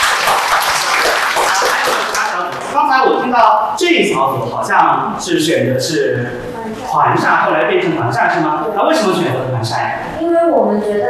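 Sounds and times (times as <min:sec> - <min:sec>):
group applauding: 0:00.0 - 0:03.2
speech: 0:02.8 - 0:11.0.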